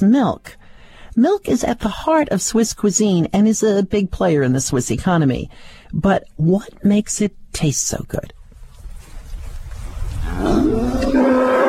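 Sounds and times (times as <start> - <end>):
speech: 0.0 - 0.6, 1.2 - 8.4
cow mooing: 10.2 - 11.6.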